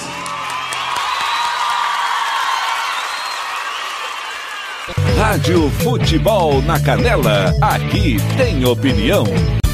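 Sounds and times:
applause: 0.0 - 5.0
cheering: 0.0 - 5.0
speech: 5.2 - 9.6.

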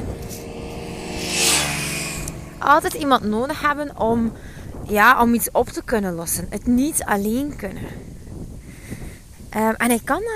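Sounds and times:
moped passing by: 0.0 - 5.2
speech: 2.6 - 8.1, 9.5 - 10.3.

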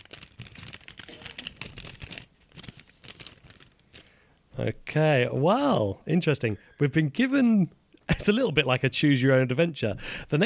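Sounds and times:
paper envelope being torn open: 0.0 - 4.1
speech: 4.6 - 10.4.

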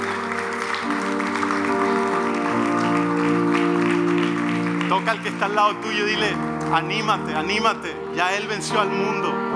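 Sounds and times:
audience clapping: 0.0 - 7.4
speech: 5.0 - 9.4.

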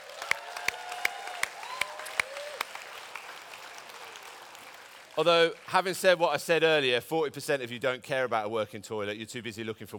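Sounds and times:
audience clapping: 0.0 - 6.8
speech: 5.2 - 9.9.

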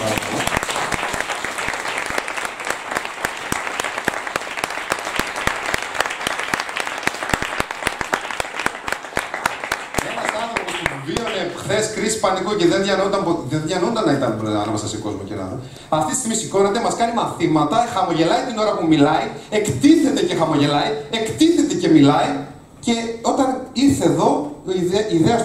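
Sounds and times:
audience applause: 0.0 - 11.5
speech: 12.2 - 25.4.

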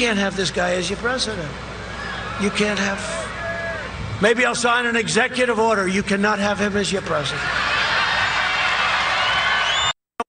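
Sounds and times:
speech: 0.0 - 1.8, 2.4 - 3.2, 4.2 - 7.7
rally crowd cheering: 1.9 - 4.0, 7.3 - 10.0
high whistle: 9.2 - 10.0.

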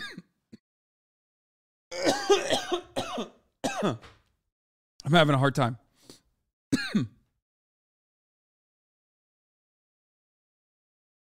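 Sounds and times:
harsh coughing after choking on saliva: 1.9 - 4.2, 6.7 - 7.3
speech: 3.8 - 4.2, 5.0 - 5.8, 6.7 - 7.2.

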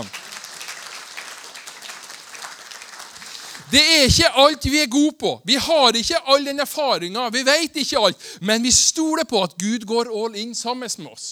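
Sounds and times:
audience clapping: 0.0 - 4.6
speech: 3.7 - 11.2.

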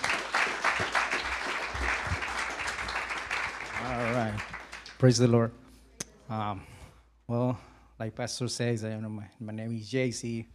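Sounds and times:
audience applause: 0.0 - 5.2
speech: 5.0 - 5.6, 6.3 - 6.7, 7.3 - 10.5.

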